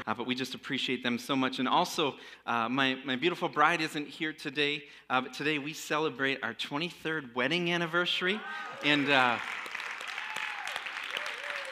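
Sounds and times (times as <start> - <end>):
speech: 0.1 - 9.6
audience applause: 8.5 - 11.7.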